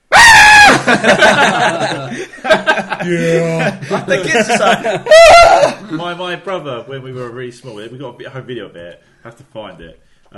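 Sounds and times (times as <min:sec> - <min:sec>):
person imitating a screaming goat: 0:00.1 - 0:00.8
chuckling laughter: 0:00.6 - 0:05.9
speech: 0:00.9 - 0:02.1, 0:03.0 - 0:10.3.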